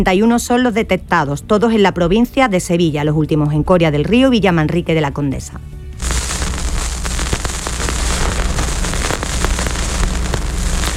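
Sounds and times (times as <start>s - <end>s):
speech: 0.0s - 5.8s
vinyl record crackling under the needle: 6.0s - 10.9s.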